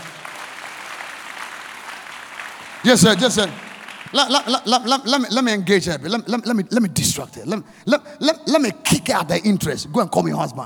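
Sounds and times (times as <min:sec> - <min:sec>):
audience clapping: 0:00.0 - 0:07.2
speech: 0:02.8 - 0:10.6.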